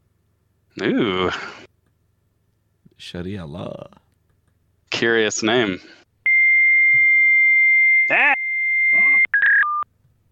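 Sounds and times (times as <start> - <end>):
speech: 0.8 - 1.7, 3.0 - 4.0, 5.0 - 6.0
modem data tones: 6.3 - 9.9.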